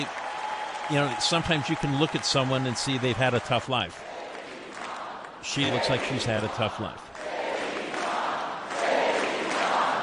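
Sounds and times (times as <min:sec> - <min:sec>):
speech: 0:00.9 - 0:04.1, 0:05.4 - 0:07.1
large crowd chanting in unison: 0:04.0 - 0:10.0.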